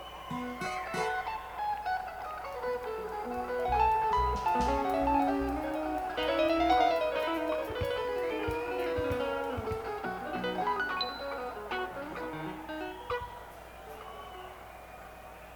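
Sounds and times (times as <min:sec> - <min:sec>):
instrument tuning: 0:00.3 - 0:01.7, 0:02.5 - 0:13.3.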